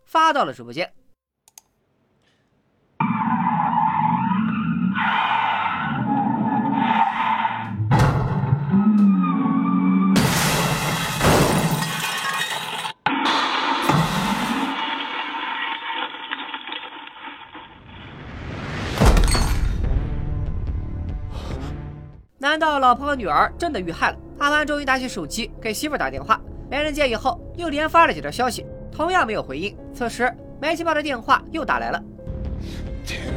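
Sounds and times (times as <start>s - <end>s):
speech: 0.1s - 1.0s, 22.6s - 33.3s
car tire screech: 3.0s - 11.1s
car crashing into convenience store: 3.0s - 20.0s
glass shattering: 10.2s - 13.0s, 19.0s - 19.8s.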